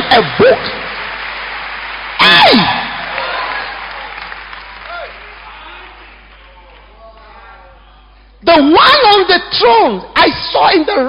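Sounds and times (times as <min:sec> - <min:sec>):
audience clapping: 0:00.0 - 0:08.0
speech: 0:00.2 - 0:00.8, 0:08.6 - 0:11.0.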